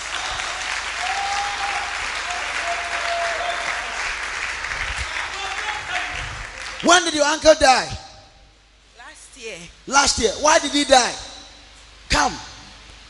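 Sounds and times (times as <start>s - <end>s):
audience clapping: 0.0s - 7.3s
faint voices and whoops: 0.4s - 3.9s
speech: 6.8s - 8.0s, 9.4s - 11.2s, 12.1s - 12.4s.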